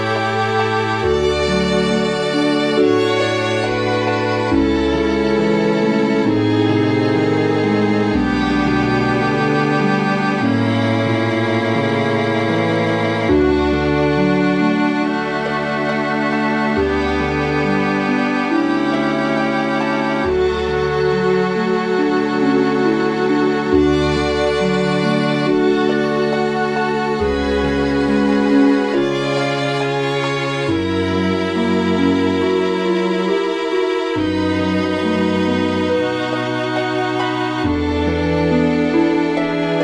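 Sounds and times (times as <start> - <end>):
harp strings: 0.0 - 39.8.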